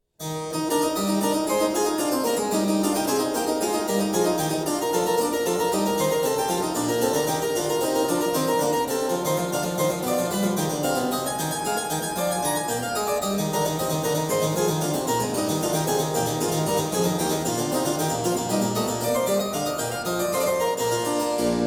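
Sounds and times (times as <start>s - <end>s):
classical prelude in E major: 0.2s - 21.6s.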